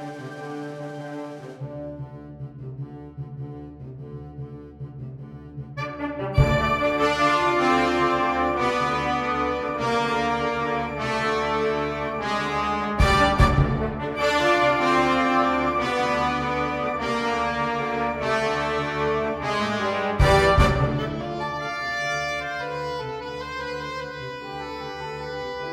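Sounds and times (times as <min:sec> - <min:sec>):
MIDI band music with saxophone: 0:05.8 - 0:25.7.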